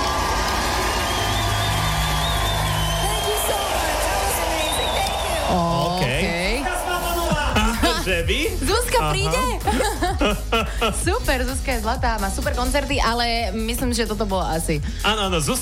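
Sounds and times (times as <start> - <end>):
audience applause: 0.0 - 8.1
laughter: 5.4 - 11.3
speech: 8.2 - 15.6.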